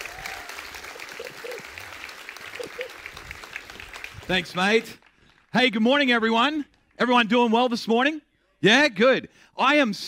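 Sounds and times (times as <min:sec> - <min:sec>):
church congregation applauding to welcome a speaker: 0:00.0 - 0:07.3
speech: 0:04.3 - 0:10.0.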